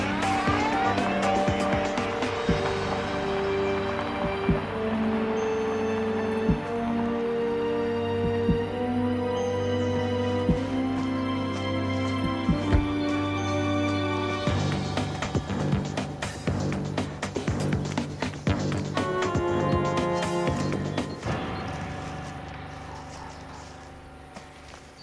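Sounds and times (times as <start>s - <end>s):
car engine humming while pulling up and parking at a village: 0.0s - 24.8s
soft thuds: 12.4s - 13.0s.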